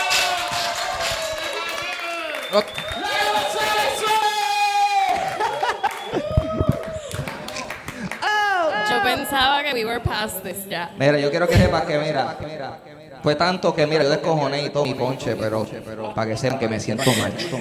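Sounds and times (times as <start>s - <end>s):
audience applause: 0.0s - 8.9s
speech: 2.5s - 2.9s, 9.3s - 17.6s
laughter: 5.1s - 9.3s, 16.7s - 17.6s.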